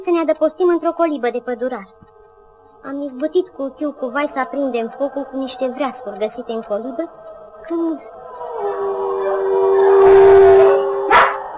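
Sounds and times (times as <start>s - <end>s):
speech: 0.0s - 2.0s, 2.8s - 8.8s
wolf howling in a forest at night: 3.2s - 11.5s.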